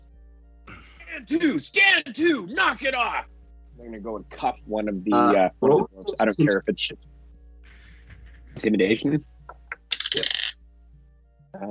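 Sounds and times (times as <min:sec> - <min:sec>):
speech: 0:01.2 - 0:07.2, 0:08.6 - 0:09.3, 0:10.2 - 0:10.4
dice being rolled: 0:09.8 - 0:10.6.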